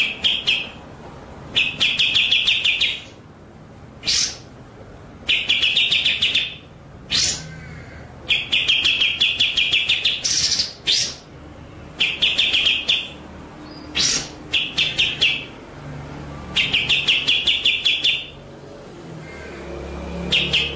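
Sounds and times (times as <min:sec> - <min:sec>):
White-rumped shama song: 0:00.0 - 0:00.9, 0:01.5 - 0:03.2, 0:04.0 - 0:04.5, 0:05.2 - 0:11.3, 0:12.0 - 0:15.6, 0:16.5 - 0:18.4, 0:20.3 - 0:20.7.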